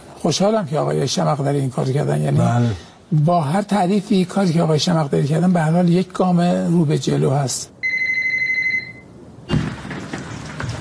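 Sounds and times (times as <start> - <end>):
speech: 0.2 - 7.8
telephone ringing: 7.8 - 9.2.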